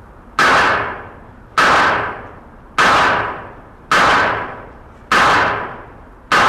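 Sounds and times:
gunshots in point shoulder shooting stance in a 1976 demonstration: 0.4s - 6.4s.

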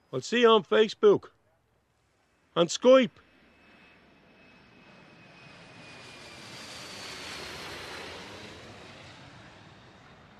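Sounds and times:
speech: 0.1s - 1.4s, 2.6s - 3.2s
airplane taking off at airport: 2.4s - 10.3s.

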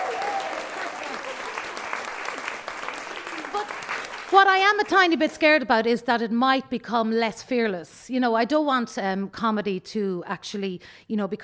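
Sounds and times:
audience applause: 0.0s - 5.0s
speech: 4.3s - 11.4s.

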